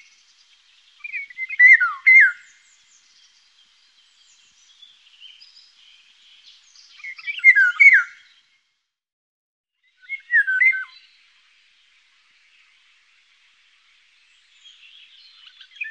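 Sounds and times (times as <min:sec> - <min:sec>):
Eurasian golden oriole song of fluty swooping notes: 0:01.0 - 0:02.7, 0:06.8 - 0:08.3, 0:09.9 - 0:11.1, 0:14.5 - 0:15.8.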